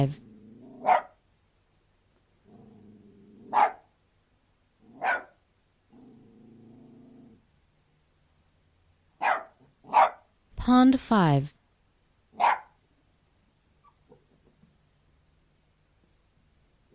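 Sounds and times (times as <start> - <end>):
speech: 0.0 - 0.2, 10.6 - 11.6
Australian terrier low rumbling growls: 0.2 - 0.9, 2.4 - 3.7, 5.9 - 7.4
Australian terrier barking: 0.8 - 1.2, 3.5 - 3.9, 5.0 - 5.4, 9.2 - 10.3, 12.4 - 12.8.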